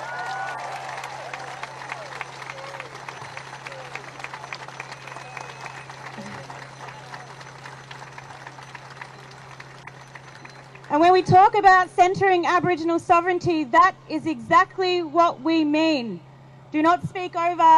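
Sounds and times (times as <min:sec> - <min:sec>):
crowd applause: 0:00.0 - 0:11.3
speech: 0:11.2 - 0:17.7.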